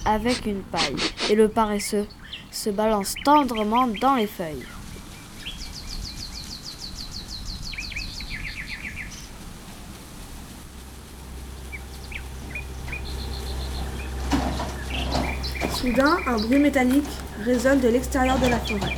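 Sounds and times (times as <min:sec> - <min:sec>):
speech: 0:00.0 - 0:04.8, 0:15.8 - 0:18.9
birds chirping in a forest: 0:00.0 - 0:09.4, 0:10.7 - 0:18.9.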